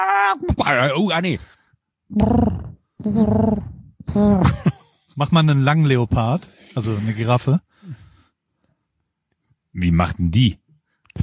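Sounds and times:
speech: 0:00.0 - 0:08.0, 0:09.8 - 0:10.6
person imitating pigeon coos: 0:02.1 - 0:04.4.

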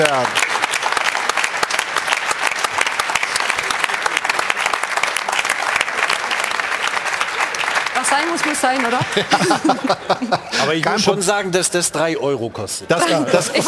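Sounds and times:
speech: 0:00.0 - 0:00.4, 0:08.6 - 0:13.6
studio audience applause: 0:00.0 - 0:10.9
laughter: 0:08.7 - 0:11.2, 0:13.0 - 0:13.6.

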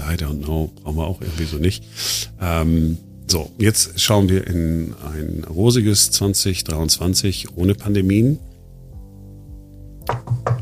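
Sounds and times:
speech: 0:00.1 - 0:08.5
knocking on wood: 0:10.0 - 0:10.6.

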